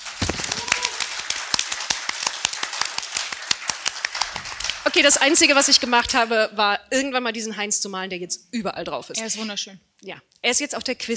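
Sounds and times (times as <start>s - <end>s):
applause: 0.0s - 5.6s
speech: 4.9s - 11.1s.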